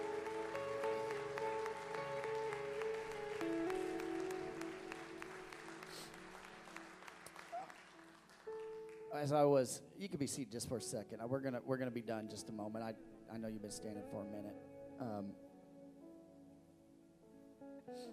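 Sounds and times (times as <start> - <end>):
audience applause: 0.0 - 9.4
speech: 9.2 - 15.5.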